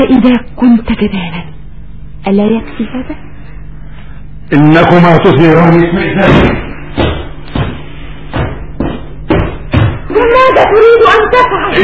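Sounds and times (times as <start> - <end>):
speech: 0.0 - 1.6, 2.2 - 3.3, 4.5 - 7.2, 10.6 - 11.8
heavy banging on a locked door: 6.2 - 10.0.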